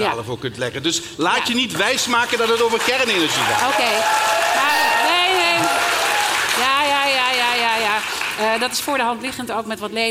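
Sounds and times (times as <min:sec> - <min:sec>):
speech: 0:00.0 - 0:05.8, 0:08.0 - 0:10.0
loud sustained audience applause: 0:01.8 - 0:08.8
voices shouting and cheering: 0:03.4 - 0:06.4.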